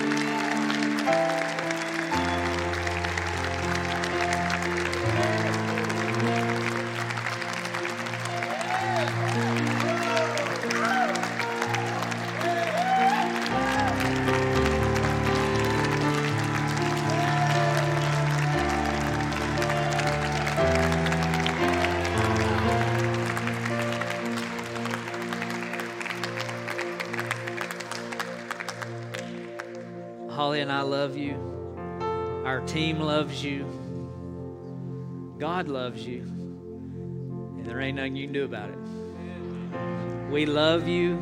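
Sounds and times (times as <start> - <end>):
large audience applause: 0.0 - 30.0
sustained keyboard or organ chords: 0.0 - 41.2
speech: 30.6 - 31.3, 32.6 - 33.8, 35.4 - 36.3, 37.9 - 39.0, 40.3 - 41.2.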